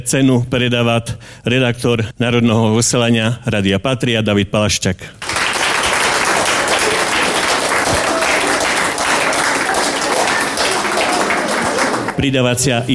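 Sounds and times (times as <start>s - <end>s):
speech: 0.0s - 5.4s, 12.2s - 12.9s
audience applause: 5.2s - 12.2s.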